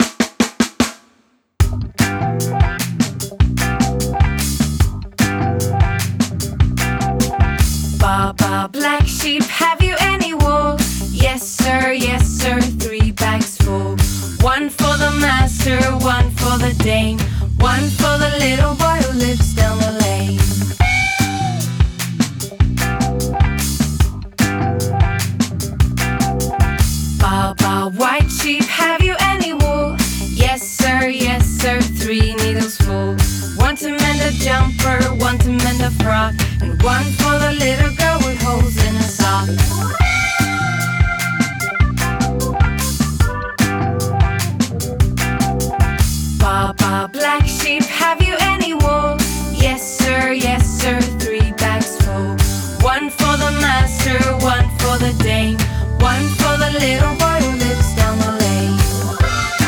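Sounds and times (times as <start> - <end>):
funk music: 1.6 - 59.6.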